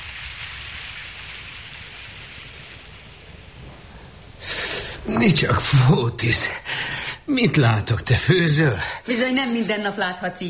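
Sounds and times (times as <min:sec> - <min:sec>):
thunder: 0:00.0 - 0:05.9
heavy rain: 0:00.0 - 0:10.4
speech: 0:05.1 - 0:10.4.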